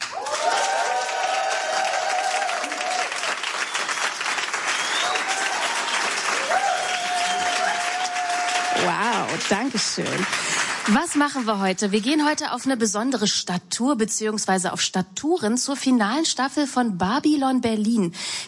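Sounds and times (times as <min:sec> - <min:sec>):
studio audience applause: 0:00.0 - 0:11.6
speech: 0:09.5 - 0:18.4.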